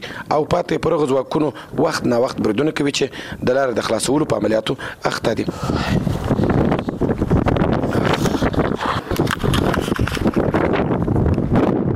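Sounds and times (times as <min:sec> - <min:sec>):
speech: 0:00.0 - 0:06.4
strong wind blowing dust across an Afghan district: 0:00.0 - 0:11.9.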